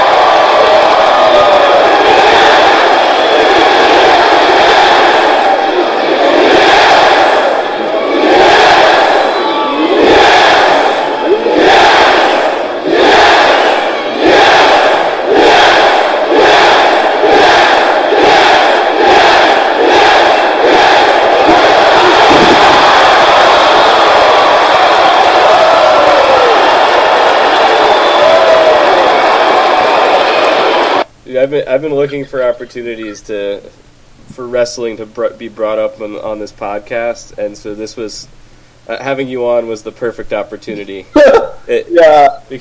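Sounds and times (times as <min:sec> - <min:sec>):
huge arena wrestling crowd chanting yes: 0:00.0 - 0:31.1
speech: 0:31.6 - 0:33.8, 0:34.4 - 0:42.5.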